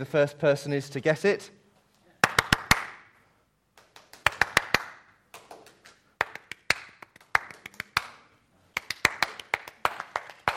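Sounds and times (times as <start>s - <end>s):
speech: 0.0s - 1.6s
hand claps clapping a rhythm: 2.2s - 3.1s, 3.8s - 10.5s.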